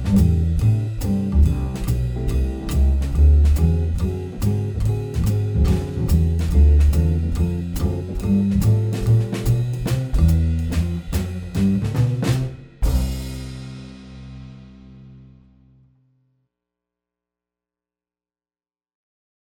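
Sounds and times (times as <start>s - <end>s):
muted piano: 0.0s - 13.8s
swing rhythm section: 0.0s - 15.3s.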